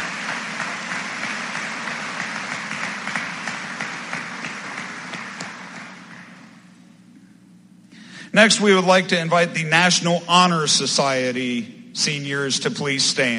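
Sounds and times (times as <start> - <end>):
audience applause for honors diploma seniors: 0.0 - 6.6
speech: 8.4 - 13.3.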